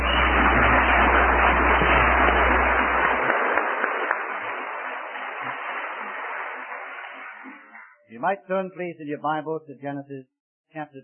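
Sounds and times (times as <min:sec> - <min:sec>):
audience applauding: 0:00.0 - 0:07.9
speech: 0:08.2 - 0:11.0.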